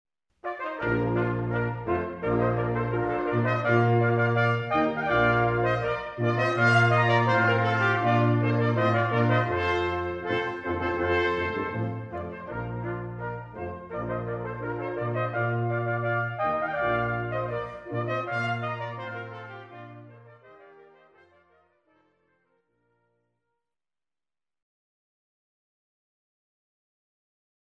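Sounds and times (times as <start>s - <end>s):
brass playing a rondeau: 0.4s - 22.0s.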